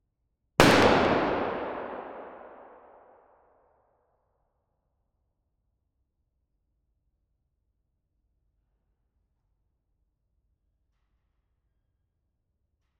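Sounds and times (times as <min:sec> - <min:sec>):
Colt M1911 .45 ACP pistol single shot in a large warehouse: 0:00.6 - 0:03.2.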